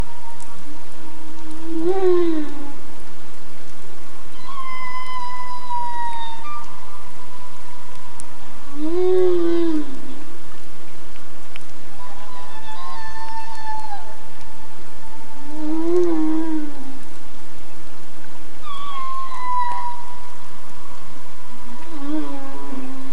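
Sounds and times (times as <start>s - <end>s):
humpback whale song: 0.0s - 2.9s, 4.3s - 10.2s, 11.9s - 17.1s, 18.6s - 23.1s.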